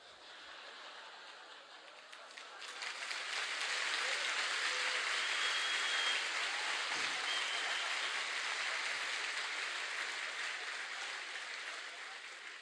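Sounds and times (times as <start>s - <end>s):
audience applause: 0.7s - 12.5s.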